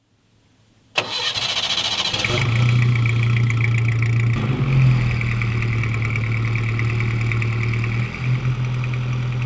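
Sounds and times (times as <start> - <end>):
engine running: 1.0 - 9.4.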